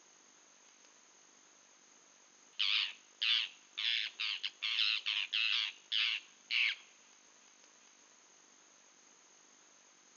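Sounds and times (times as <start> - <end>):
bird cawing: 2.6 - 6.8.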